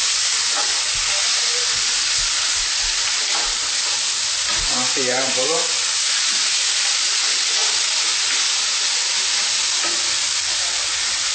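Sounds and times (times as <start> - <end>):
food frying in a pan: 0.0 - 11.3
speech: 5.0 - 5.8.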